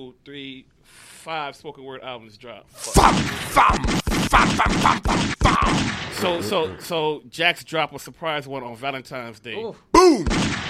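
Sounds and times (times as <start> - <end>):
speech: 0.0 - 10.5
gunshot sound effects: 2.9 - 6.6, 10.1 - 10.6.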